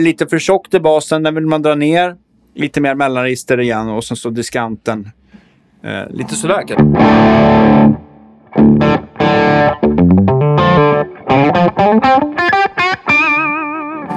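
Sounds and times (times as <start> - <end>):
speech: 0.0 - 5.2, 5.8 - 10.4
heavily distorted electric guitar through a high-gain amp playing a riff: 6.2 - 14.1.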